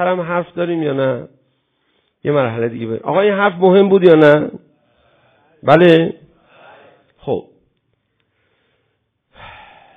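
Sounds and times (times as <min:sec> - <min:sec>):
speech: 0:00.0 - 0:01.4, 0:02.2 - 0:04.6, 0:05.6 - 0:06.2, 0:07.2 - 0:07.5
out-of-breath speaker inhaling: 0:04.9 - 0:05.6, 0:06.4 - 0:07.1, 0:08.2 - 0:09.9.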